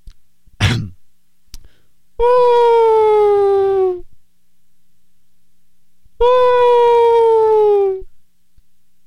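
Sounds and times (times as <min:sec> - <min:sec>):
quick breath: 0:01.6 - 0:02.0
person imitating whale call: 0:02.2 - 0:04.1, 0:06.2 - 0:08.1.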